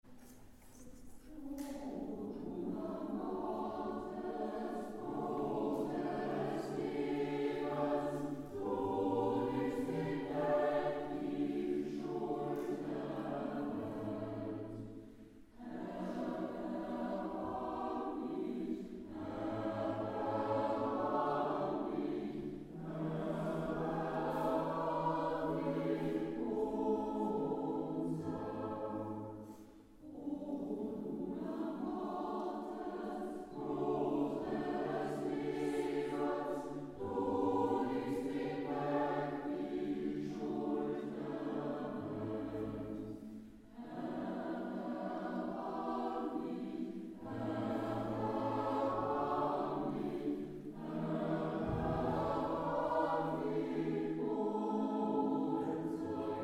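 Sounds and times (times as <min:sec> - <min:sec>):
choir singing mass: 0:00.2 - 0:56.4.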